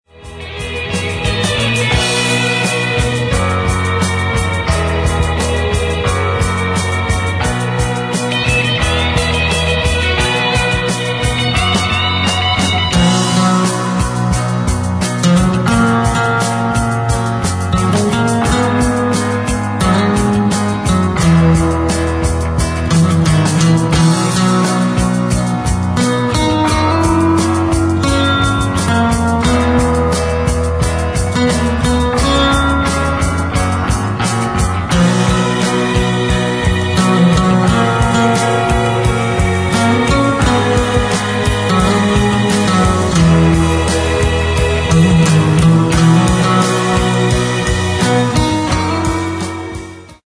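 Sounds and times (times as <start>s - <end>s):
instrumental music: 0.0s - 50.2s.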